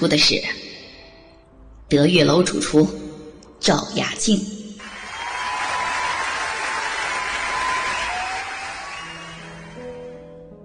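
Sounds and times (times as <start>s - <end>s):
speech: 0.0s - 0.6s, 1.9s - 3.0s, 3.6s - 4.6s
audience applause: 4.8s - 10.2s.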